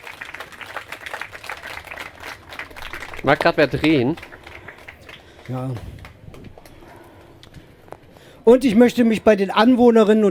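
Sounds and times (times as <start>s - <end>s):
audience applause: 0.0s - 6.7s
speech: 3.2s - 4.3s, 5.5s - 6.0s, 8.5s - 10.3s.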